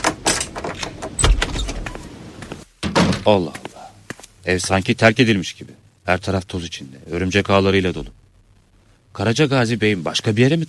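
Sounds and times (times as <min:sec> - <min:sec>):
key unlocking the door of a dusty abandoned house: 0:00.0 - 0:01.8
speech: 0:03.2 - 0:03.6, 0:04.4 - 0:08.2, 0:09.2 - 0:10.6.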